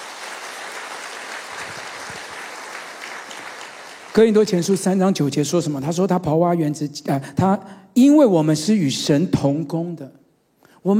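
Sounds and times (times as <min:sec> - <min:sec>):
audience clapping: 0:00.0 - 0:05.1
speech: 0:04.2 - 0:10.2.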